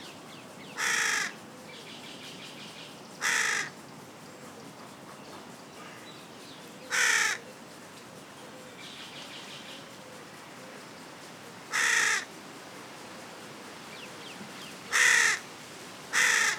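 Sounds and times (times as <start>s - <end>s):
Carrion crow Corvus corone giving harsh caws: 0.8s - 1.4s, 3.2s - 3.7s, 6.9s - 7.4s, 11.7s - 12.3s, 14.9s - 15.4s, 16.1s - 16.5s.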